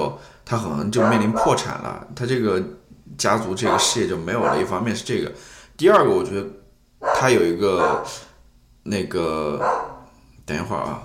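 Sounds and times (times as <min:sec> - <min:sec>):
speech: 0:00.0 - 0:09.9, 0:10.5 - 0:11.0
dog barking outside: 0:01.0 - 0:01.7, 0:03.6 - 0:04.8, 0:07.0 - 0:08.3, 0:09.6 - 0:10.1.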